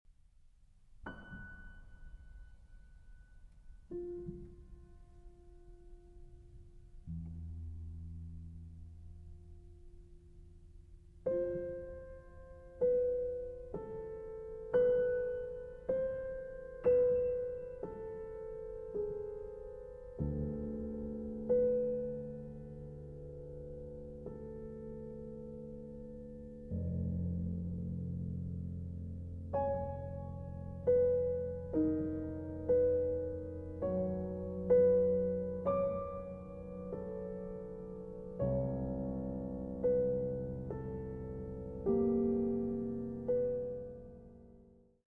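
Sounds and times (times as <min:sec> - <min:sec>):
grand piano: 0:00.1 - 0:45.0.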